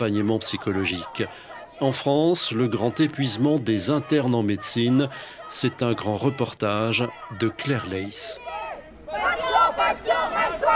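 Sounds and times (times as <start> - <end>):
speech: 0.0 - 8.4, 9.8 - 10.7
crowd of protesters shouting in a march: 0.0 - 10.7.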